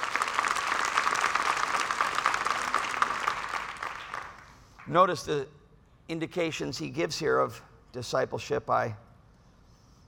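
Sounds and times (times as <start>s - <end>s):
audience clapping: 0.0s - 4.9s
speech: 4.9s - 9.0s.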